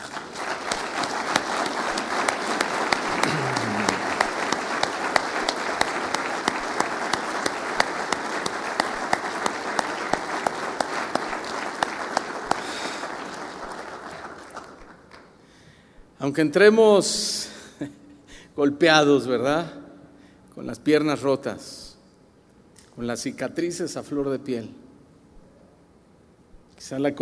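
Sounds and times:
crowd applauding loudly: 0.0s - 15.1s
laughter: 1.2s - 6.8s
speech: 16.3s - 17.5s, 18.6s - 19.8s, 20.6s - 21.8s, 23.0s - 24.8s, 26.9s - 27.1s.

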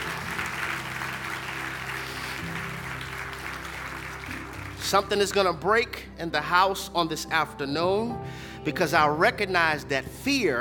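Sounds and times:
audience hand clapping: 0.0s - 5.6s
speech: 4.9s - 10.5s.

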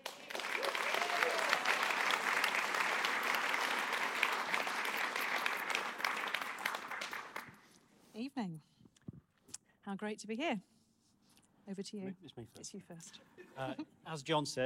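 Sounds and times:
church audience applauding: 0.0s - 7.6s
speech: 10.0s - 10.7s, 11.7s - 14.6s.

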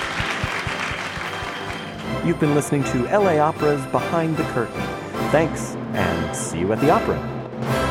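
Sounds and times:
audience applause: 0.0s - 3.4s
speech: 2.2s - 7.8s.

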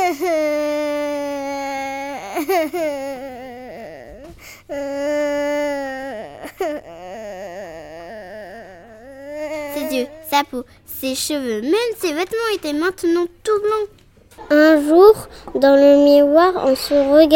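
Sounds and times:
girl crying: 0.0s - 10.6s
speech: 2.4s - 3.3s, 10.4s - 17.3s.

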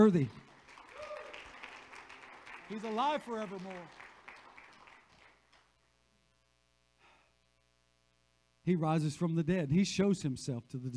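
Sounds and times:
speech: 0.0s - 0.4s, 2.7s - 4.0s, 8.7s - 10.9s
people clapping: 0.0s - 5.7s.

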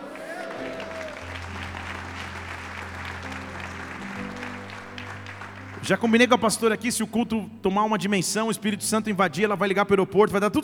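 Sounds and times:
audience applause: 0.0s - 6.8s
speech: 5.8s - 10.6s.

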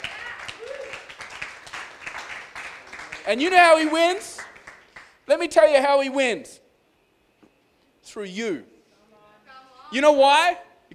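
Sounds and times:
audience clapping: 0.0s - 5.2s
speech: 3.3s - 4.3s, 5.3s - 6.6s, 8.1s - 8.7s, 9.9s - 10.9s.

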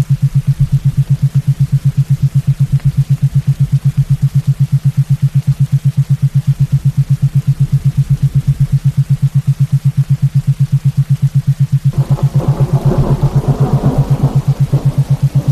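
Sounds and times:
8 Hz pulsing low tone: 0.0s - 15.5s
gentle rainfall: 0.0s - 15.5s
rumble of subtle thunder: 11.9s - 15.5s.

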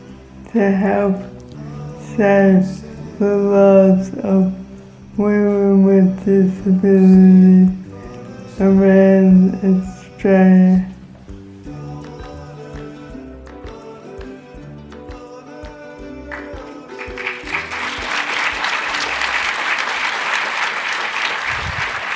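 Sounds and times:
speech: 0.5s - 1.4s, 2.2s - 4.6s, 5.2s - 7.8s, 8.6s - 10.9s
audience applause: 16.3s - 22.1s.

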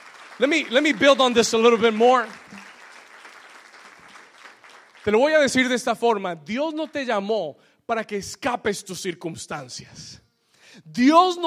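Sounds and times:
audience applause: 0.0s - 5.7s
speech: 0.4s - 2.4s, 5.0s - 11.4s.

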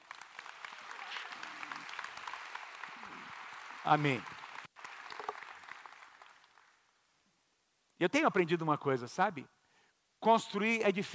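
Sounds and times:
audience applause: 0.0s - 6.9s
speech: 3.8s - 4.3s, 8.0s - 9.6s, 10.2s - 11.1s.

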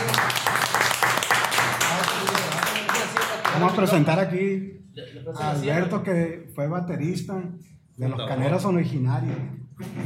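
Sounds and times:
applause: 0.0s - 4.0s
speech: 3.6s - 10.0s.

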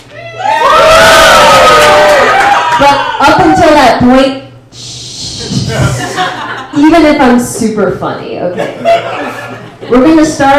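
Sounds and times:
crowd of about fifty people cheering with shouts and screams: 0.0s - 3.6s
speech: 3.0s - 4.4s, 6.8s - 9.1s, 9.9s - 10.5s
laughter: 5.4s - 6.8s, 8.5s - 10.2s.

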